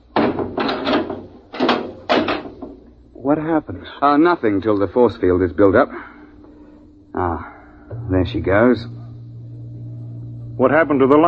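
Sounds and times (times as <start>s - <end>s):
vehicle hatch slammed shut: 0.1s - 2.8s
speech: 3.3s - 6.1s, 7.2s - 9.0s, 10.6s - 11.2s.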